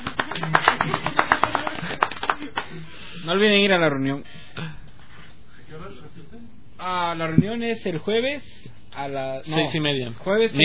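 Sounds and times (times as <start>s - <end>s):
few people clapping: 0.0s - 2.8s
speech: 3.3s - 4.7s, 6.8s - 10.6s.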